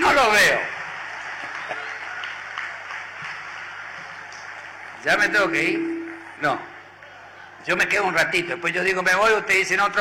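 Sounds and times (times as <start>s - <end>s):
audience applause: 0.1s - 7.6s
speech: 5.0s - 6.7s, 7.6s - 9.9s.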